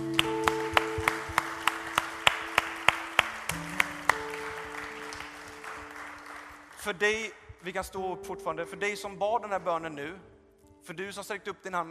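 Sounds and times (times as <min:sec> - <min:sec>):
audience applause: 0:00.0 - 0:07.3
speech: 0:06.9 - 0:11.8.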